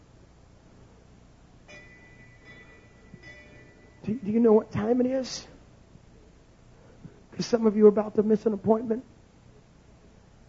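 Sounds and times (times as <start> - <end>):
bell ringing: 1.7 - 5.3
speech: 4.0 - 5.5, 7.4 - 9.1.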